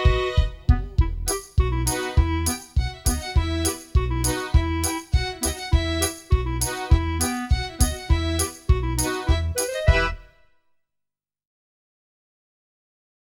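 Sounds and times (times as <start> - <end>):
song backing track: 0.0 - 10.5.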